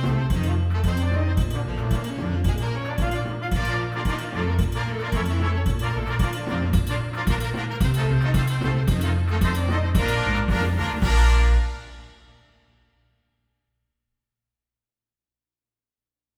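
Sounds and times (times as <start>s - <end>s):
Haitian folk song: 0.0s - 12.2s.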